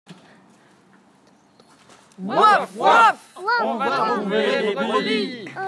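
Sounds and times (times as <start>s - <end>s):
war cry: 2.2s - 5.5s.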